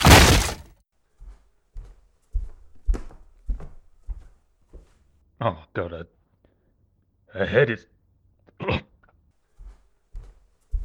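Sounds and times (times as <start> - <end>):
door being broken down, splintering crash: 0.0 - 0.6
heavy thuds and knocks on a door: 0.0 - 0.6
speech: 5.4 - 6.2, 7.3 - 8.0, 8.6 - 8.8.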